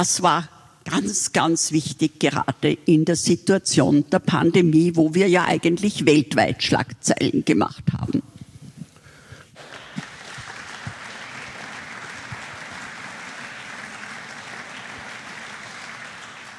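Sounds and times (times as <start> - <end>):
speech: 0.0 - 8.0
audience applause: 9.6 - 16.5.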